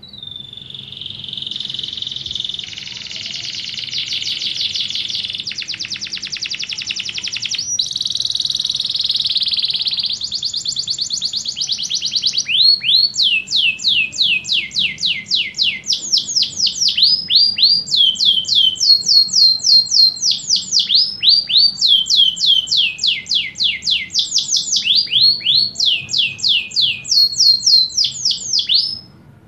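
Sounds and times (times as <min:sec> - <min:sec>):
canary singing descending whistled notes: 0:00.0 - 0:29.1.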